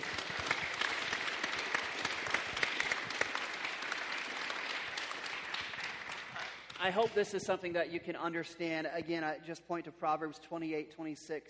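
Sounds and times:
audience applause: 0.0 - 7.2
speech: 6.8 - 11.4.

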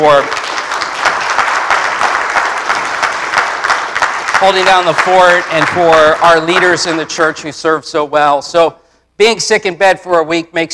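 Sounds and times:
speech: 0.0 - 0.4, 4.4 - 10.7
audience applause: 0.0 - 7.2.

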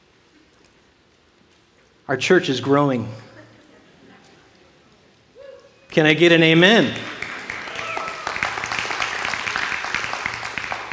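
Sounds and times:
speech: 2.1 - 3.2, 6.0 - 7.1
audience clapping: 6.7 - 10.9.

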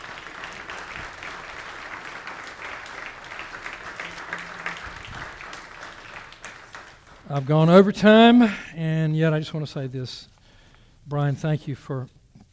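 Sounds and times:
audience applause: 0.0 - 7.6
speech: 7.3 - 10.3, 11.1 - 12.5.

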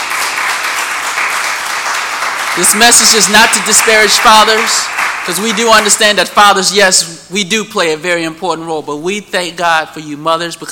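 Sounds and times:
round of applause: 0.0 - 6.3
speech: 2.6 - 10.7.

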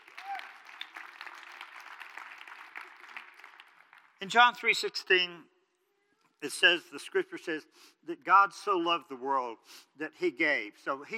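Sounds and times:
room full of people clapping: 0.0 - 4.9
speech: 4.2 - 5.5, 6.4 - 11.1.

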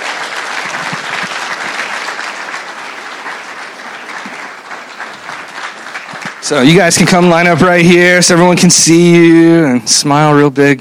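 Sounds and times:
audience applause for graduates: 0.0 - 8.6
speech: 6.5 - 10.8.

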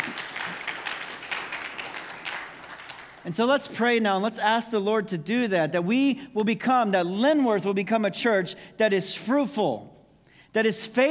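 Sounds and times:
crowd clapping: 0.0 - 3.8
speech: 3.2 - 9.9, 10.5 - 11.0.

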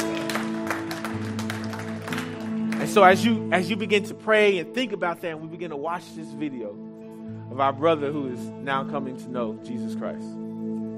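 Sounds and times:
audience clapping: 0.0 - 3.3
speech: 2.8 - 6.8, 7.6 - 10.4.

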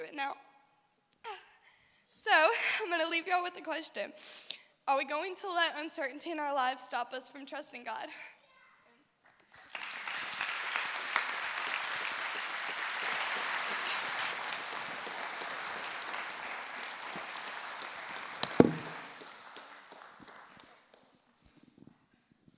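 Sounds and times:
speech: 0.2 - 0.5, 2.2 - 8.3
crowd clapping: 9.2 - 21.1.

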